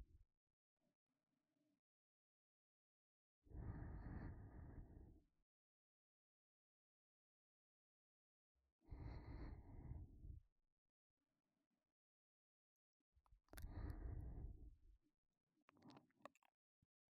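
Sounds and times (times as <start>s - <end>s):
ASMR breathing in the right ear: 3.5s - 5.2s, 8.9s - 10.4s, 13.6s - 14.8s.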